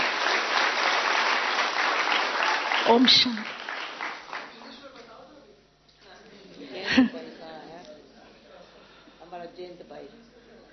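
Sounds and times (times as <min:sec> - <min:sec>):
audience applause: 0:00.0 - 0:04.9
speech: 0:02.9 - 0:03.6, 0:07.0 - 0:07.2.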